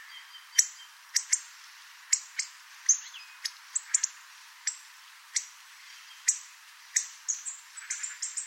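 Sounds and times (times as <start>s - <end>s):
hawfinch tick calls: 0.5s - 1.5s, 2.1s - 5.5s, 6.1s - 8.4s.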